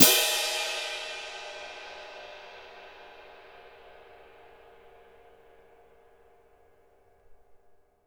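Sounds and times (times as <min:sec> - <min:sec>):
orchestral cymbal: 0:00.0 - 0:05.9.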